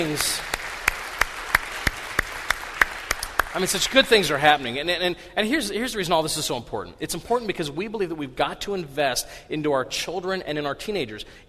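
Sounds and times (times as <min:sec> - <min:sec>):
speech: 0:00.0 - 0:00.5, 0:03.6 - 0:11.4
church audience clapping in unison: 0:00.0 - 0:04.8.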